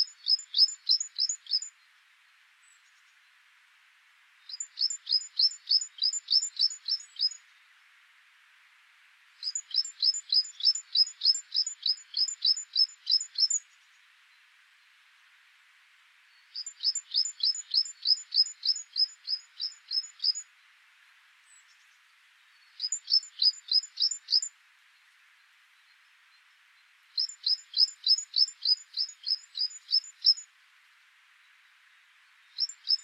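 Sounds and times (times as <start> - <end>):
great tit singing two-note phrases: 0.0 - 1.8, 4.5 - 7.4, 9.4 - 13.7, 16.4 - 20.5, 22.5 - 24.5, 27.2 - 30.5, 32.4 - 33.0.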